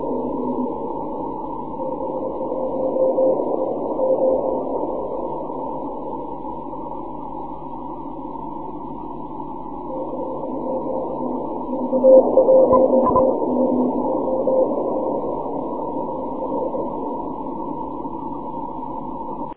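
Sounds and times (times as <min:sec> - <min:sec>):
6m continuous wave radio signal: 0:00.0 - 0:19.5.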